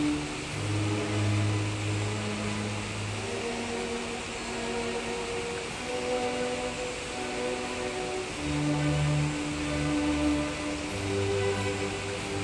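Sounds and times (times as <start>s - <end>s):
waterfall: 0.0s - 12.4s.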